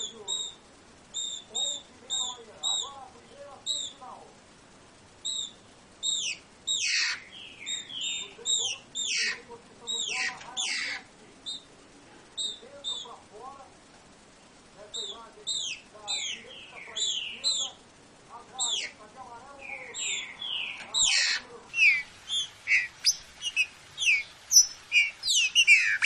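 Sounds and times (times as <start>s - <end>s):
green-winged saltator singing classic song: 0.0s - 3.0s, 3.6s - 4.0s, 5.2s - 11.7s, 12.4s - 13.2s, 14.9s - 17.8s, 18.6s - 19.0s, 19.6s - 26.0s.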